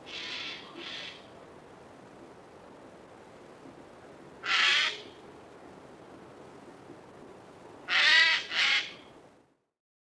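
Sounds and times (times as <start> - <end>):
quiet hiss: 0.0 - 9.8
bird harsh raspy squawks: 0.1 - 1.2, 4.4 - 5.0, 7.9 - 8.9.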